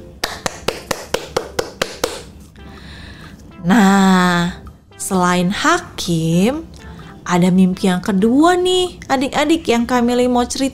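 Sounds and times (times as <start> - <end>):
children clapping hands: 0.2 - 2.3
speech: 3.6 - 6.7, 7.3 - 10.7.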